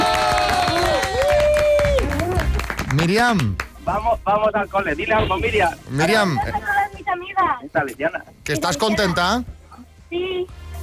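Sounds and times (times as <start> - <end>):
studio audience on a prize show applauding: 0.0 - 3.7
crowd noise: 0.0 - 9.2
speech: 3.0 - 6.7, 7.4 - 10.8.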